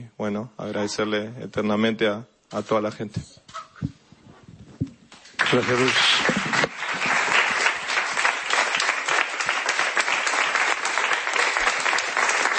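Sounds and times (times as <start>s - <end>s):
speech: 0.0s - 4.0s, 5.5s - 6.3s
applause: 5.3s - 12.5s.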